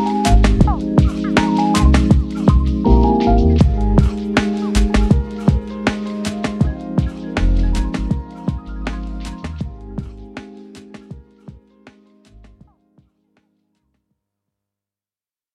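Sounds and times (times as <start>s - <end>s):
birds chirping: 0.0s - 11.5s
instrumental lofi cafe music: 0.0s - 12.9s.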